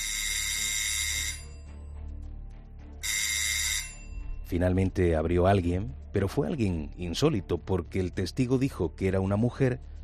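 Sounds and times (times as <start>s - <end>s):
doorbell ringing in harsh buzzing bursts: 0.0s - 1.7s, 3.0s - 4.1s
speech: 4.5s - 9.9s.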